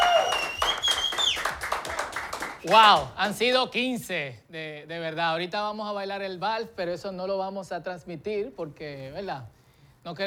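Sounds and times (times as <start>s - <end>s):
sliding whistle-like tones: 0.0s - 1.6s
crowd applause: 0.0s - 3.0s
speech: 2.6s - 10.2s.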